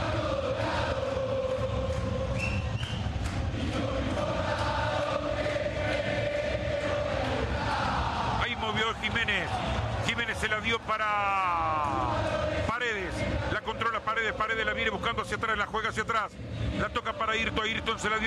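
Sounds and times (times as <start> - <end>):
football stadium crowd chanting and shouting during a Boca vs Huracán match: 0.0 - 18.2
speech: 9.0 - 11.7, 12.8 - 18.2.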